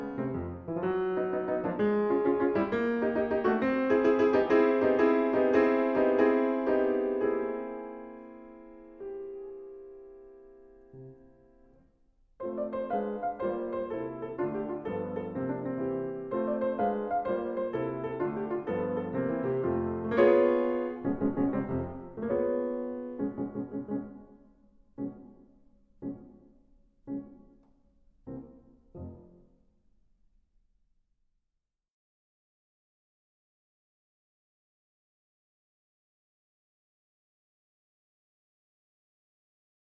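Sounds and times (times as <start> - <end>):
piano recital: 0.0 - 29.6.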